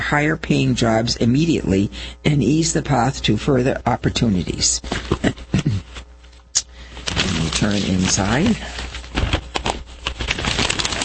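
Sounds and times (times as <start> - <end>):
speech: 0.1 - 5.9, 7.6 - 8.8
paper being moved around and shuffled: 4.9 - 11.0.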